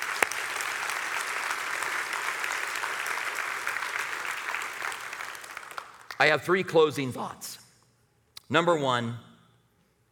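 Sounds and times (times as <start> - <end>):
audience applause: 0.0 - 6.2
speech: 6.2 - 7.6, 8.5 - 9.3.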